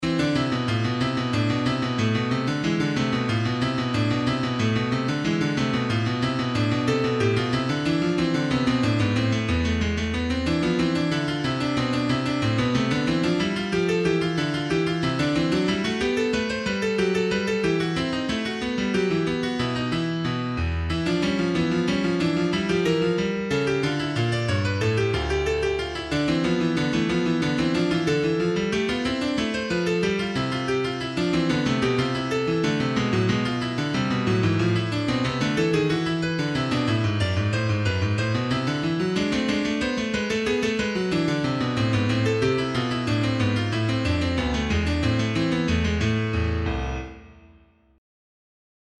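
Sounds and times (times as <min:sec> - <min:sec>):
keyboard suite bourree: 0:00.0 - 0:47.4.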